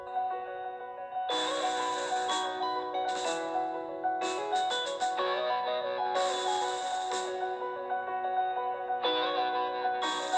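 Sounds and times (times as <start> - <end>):
sparkle effect: 0.1 - 10.3.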